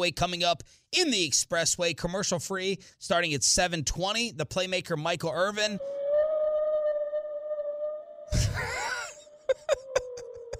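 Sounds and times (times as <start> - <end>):
speech: 0.0 - 6.0
whale call: 5.8 - 10.5.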